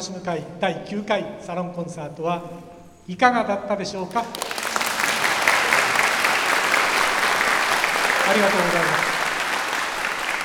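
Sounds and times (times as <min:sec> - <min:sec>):
speech: 0:00.0 - 0:04.5, 0:08.3 - 0:09.1
audience applause: 0:04.3 - 0:10.4.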